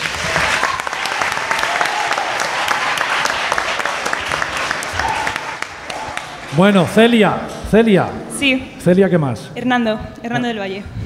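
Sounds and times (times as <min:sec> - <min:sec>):
audience applause: 0:00.0 - 0:07.6
speech: 0:06.6 - 0:11.0.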